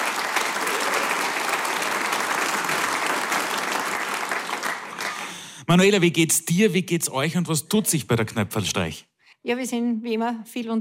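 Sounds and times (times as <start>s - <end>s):
audience applause: 0.0s - 5.6s
speech: 5.7s - 10.7s.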